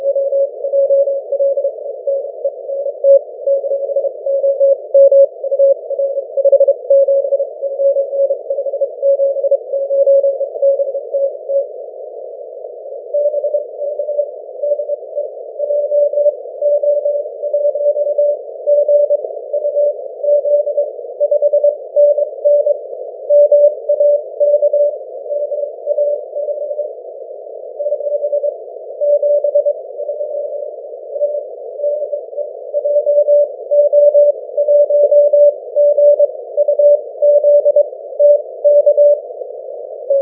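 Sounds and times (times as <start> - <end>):
20m continuous wave radio signal: 0.0 - 40.2.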